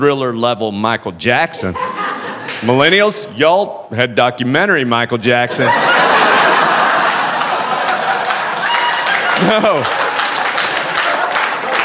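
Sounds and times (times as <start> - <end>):
speech: 0.0 - 1.9, 2.6 - 5.9, 9.4 - 10.0
laughter: 1.6 - 2.8, 5.4 - 11.8
audience applause: 6.3 - 11.8.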